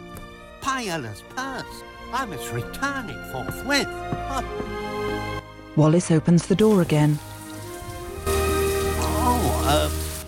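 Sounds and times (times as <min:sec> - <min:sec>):
speech: 0:00.7 - 0:07.3, 0:09.7 - 0:10.0
heavy storm rain: 0:06.8 - 0:10.2.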